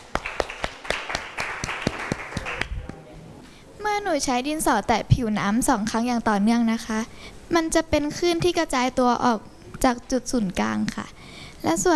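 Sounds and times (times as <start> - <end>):
classroom applause: 0.0 - 3.0
speech: 4.0 - 11.9.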